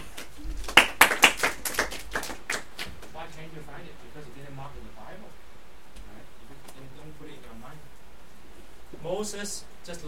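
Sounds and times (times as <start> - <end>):
group clapping hands: 0.0 - 3.2
speech: 7.1 - 8.0, 8.9 - 10.0.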